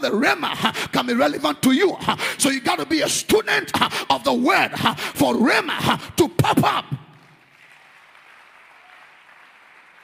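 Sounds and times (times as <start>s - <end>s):
speech: 0.0s - 7.0s
audience clapping: 6.9s - 10.0s.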